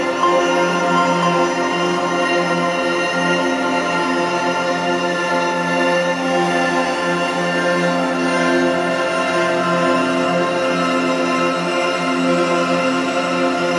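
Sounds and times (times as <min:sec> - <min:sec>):
synthesized harp: 0:00.1 - 0:13.7.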